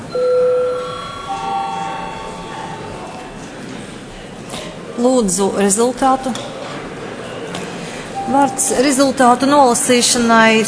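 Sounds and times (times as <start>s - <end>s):
parliament break bell electronic tone: 0.0s - 3.1s
speech: 5.0s - 6.6s, 8.3s - 10.6s.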